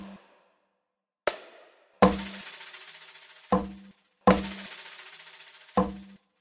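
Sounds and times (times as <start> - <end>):
rhythm exercise in compound meter: 1.3 - 6.3.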